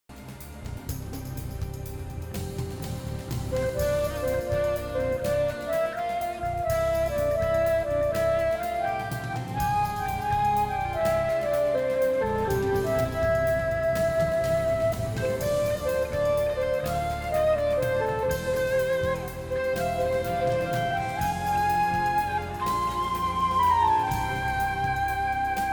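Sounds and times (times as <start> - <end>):
guitar: 0.1 - 25.7.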